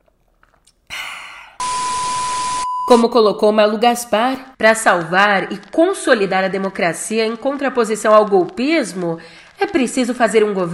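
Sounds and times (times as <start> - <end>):
sipping hot coffee: 0.0 - 1.8
speech: 2.9 - 10.7.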